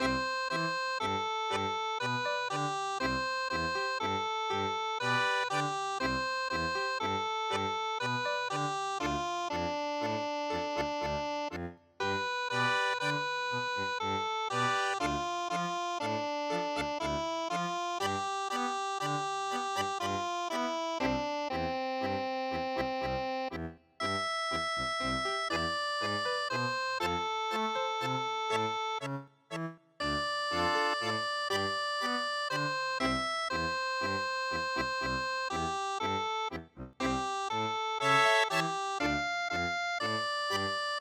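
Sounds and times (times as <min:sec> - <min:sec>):
tango music: 0:00.0 - 0:40.9.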